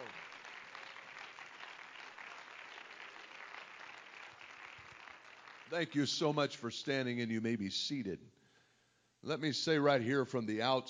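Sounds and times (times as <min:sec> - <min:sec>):
audience clapping hands in praise: 0:00.0 - 0:06.3
speech: 0:05.7 - 0:08.4, 0:09.2 - 0:10.8.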